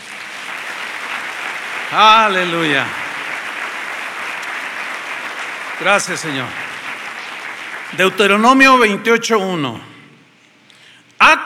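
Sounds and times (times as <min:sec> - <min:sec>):
audience applause: 0:00.0 - 0:09.0
speech: 0:01.9 - 0:03.0, 0:05.8 - 0:06.6, 0:07.9 - 0:09.9, 0:11.2 - 0:11.4.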